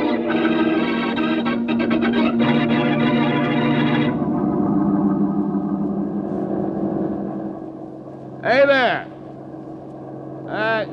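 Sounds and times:
bus engine passing: 0.0 - 8.4.

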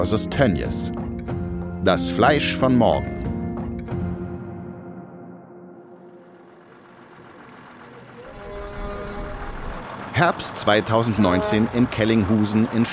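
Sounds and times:
speech: 0.0 - 1.1, 1.8 - 3.3, 10.2 - 12.9
pig transport trucks honking in a queue: 5.9 - 12.9.

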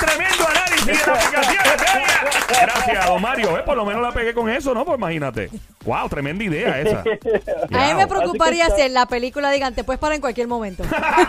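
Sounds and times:
cheering and whooping voices: 0.0 - 3.1
laughter: 0.0 - 3.6, 6.4 - 8.9, 10.8 - 11.2
crowd clapping applause sound effect: 0.0 - 4.1
speech: 3.1 - 11.2.

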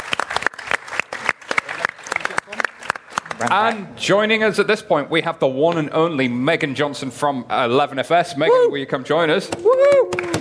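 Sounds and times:
crowd applauding: 0.0 - 3.8, 9.5 - 10.3
speech: 3.4 - 10.2.

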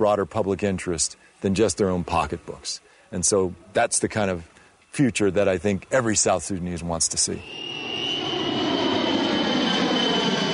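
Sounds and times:
speech: 0.0 - 7.6
airplane engine flying overhead: 7.2 - 10.5.

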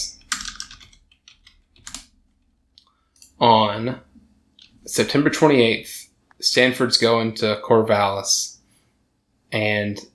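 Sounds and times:
computer keyboard typing: 0.0 - 3.4
speech: 3.4 - 4.1, 4.9 - 8.5, 9.5 - 10.1.

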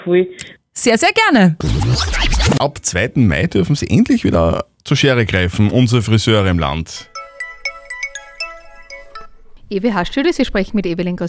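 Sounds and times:
speech: 0.0 - 7.2, 9.7 - 11.2
telephone ringing with melodic electronic ringtone: 7.1 - 9.5.

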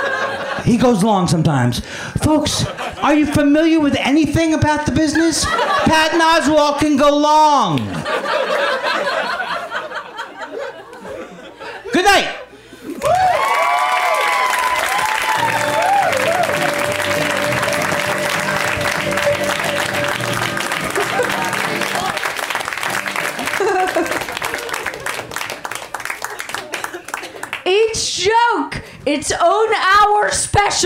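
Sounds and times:
laughter: 0.0 - 0.8, 2.3 - 3.8, 5.1 - 6.4, 7.8 - 13.3, 15.2 - 27.6
speech: 0.7 - 9.2, 12.0 - 12.4, 29.1 - 30.8
audience cheering and whoops: 13.0 - 22.3
audience applause: 13.0 - 27.6.

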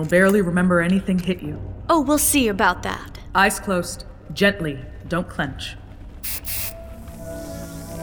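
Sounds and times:
speech: 0.0 - 6.6
medical sealant spray hissing: 6.2 - 6.8.

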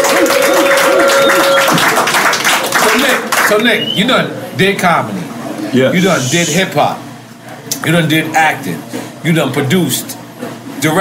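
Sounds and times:
crowd cheering and whooping: 0.0 - 2.1
audience applause: 0.0 - 3.6
speech: 3.5 - 7.0, 7.8 - 10.2, 10.8 - 10.9.

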